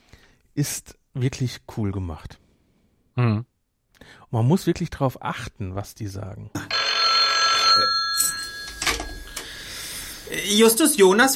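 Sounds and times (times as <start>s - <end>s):
speech: 0.6s - 2.4s, 3.2s - 6.8s, 7.8s - 8.4s, 10.3s - 11.3s
telephone bell ringing in audio drama: 6.6s - 9.9s.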